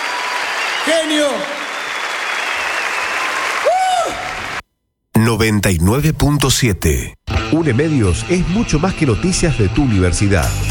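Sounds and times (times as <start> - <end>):
audience applause: 0.0 - 4.6
speech: 0.9 - 1.6, 5.2 - 10.6.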